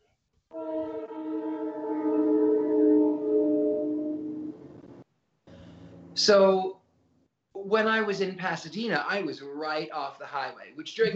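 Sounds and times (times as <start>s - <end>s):
train horn: 0.5s - 5.0s
train passing: 1.1s - 5.0s
speech: 6.2s - 6.8s, 7.7s - 11.1s.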